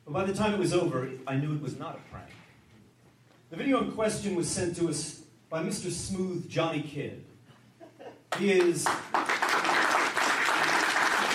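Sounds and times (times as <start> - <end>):
speech: 0.1 - 2.4, 3.5 - 7.3, 8.4 - 9.2
audience applause at a wrestling show: 8.8 - 11.3.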